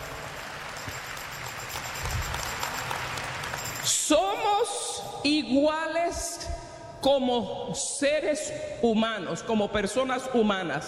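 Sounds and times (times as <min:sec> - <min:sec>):
audience applause: 0:00.0 - 0:04.0
speech: 0:04.1 - 0:10.8.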